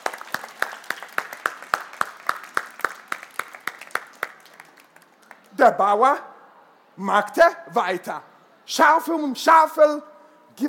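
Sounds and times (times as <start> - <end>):
applause: 0.0 - 5.6
speech: 5.6 - 6.3, 7.0 - 10.6.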